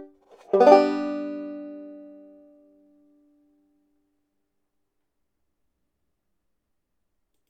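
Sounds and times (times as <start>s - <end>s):
vamping with chord changes: 0.6s - 2.6s.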